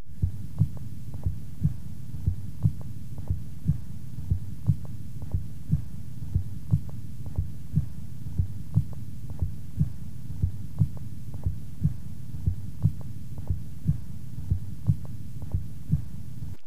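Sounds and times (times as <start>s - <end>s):
low rumbling hum: 0.0s - 16.6s
heart sounds at the cardiac apex through a stethoscope, weakened first sound: 0.1s - 16.2s.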